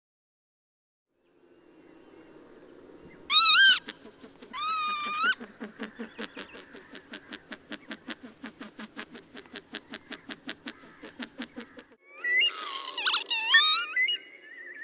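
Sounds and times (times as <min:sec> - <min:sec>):
northern lapwing calling with wheezy whistles: 0:03.2 - 0:14.8.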